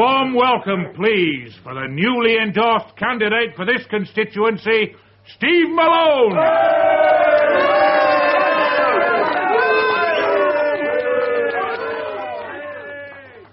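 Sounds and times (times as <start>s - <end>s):
speech: 0.0s - 7.7s
crowd booing: 6.3s - 13.5s.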